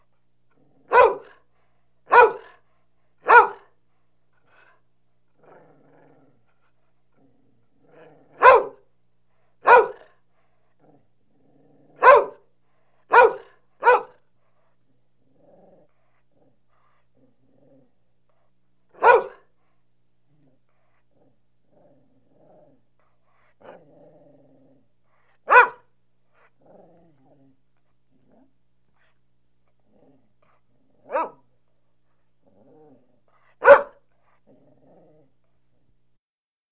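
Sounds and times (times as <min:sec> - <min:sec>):
dog barking: 0:00.9 - 0:01.4, 0:02.1 - 0:02.6, 0:03.2 - 0:03.7, 0:08.4 - 0:08.8, 0:09.6 - 0:10.1, 0:12.0 - 0:12.5, 0:13.1 - 0:14.2, 0:19.0 - 0:19.5, 0:25.4 - 0:25.9, 0:31.0 - 0:31.4, 0:33.6 - 0:34.0.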